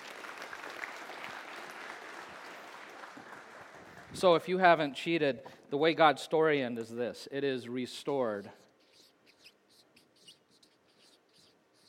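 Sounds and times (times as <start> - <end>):
audience applause: 0.0 - 4.2
speech: 4.1 - 8.6.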